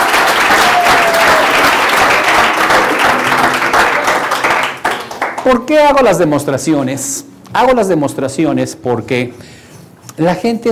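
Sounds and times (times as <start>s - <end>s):
audience applause: 0.0s - 5.6s
speech: 5.5s - 9.6s, 10.2s - 10.7s.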